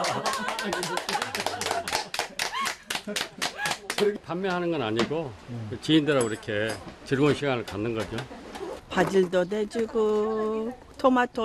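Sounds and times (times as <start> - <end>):
speech: 0.0 - 1.4, 3.1 - 8.4, 9.0 - 11.4
group clapping: 0.0 - 4.2
voices and light laughter: 0.0 - 4.2.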